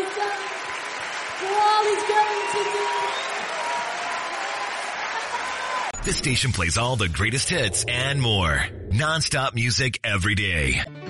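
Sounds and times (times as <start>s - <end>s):
congregation clapping in church: 0.0s - 6.0s
speech: 1.8s - 3.3s, 6.0s - 10.9s.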